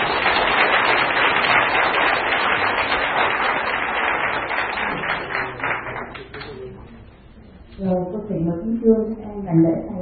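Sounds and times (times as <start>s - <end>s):
round of applause: 0.0s - 6.9s
speech: 8.8s - 9.9s.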